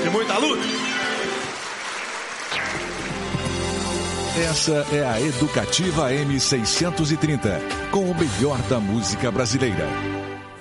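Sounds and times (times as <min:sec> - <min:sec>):
speech: 0:00.1 - 0:00.9, 0:04.4 - 0:10.5
round of applause: 0:00.8 - 0:04.0.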